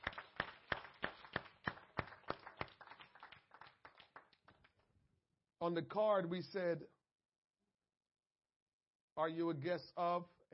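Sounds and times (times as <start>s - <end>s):
church congregation clapping to welcome guests: 0.0s - 4.9s
speech: 5.6s - 7.0s, 9.2s - 10.5s.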